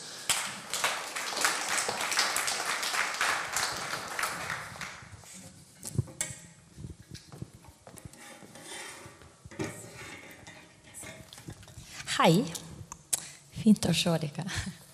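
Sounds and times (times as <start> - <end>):
audience applause: 0.0 - 5.1
speech: 12.2 - 12.6, 13.6 - 14.8.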